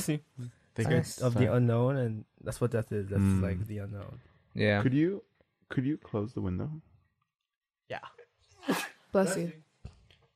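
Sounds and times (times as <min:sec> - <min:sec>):
speech: 0:00.0 - 0:06.9, 0:07.9 - 0:09.6
sneeze: 0:08.5 - 0:09.1.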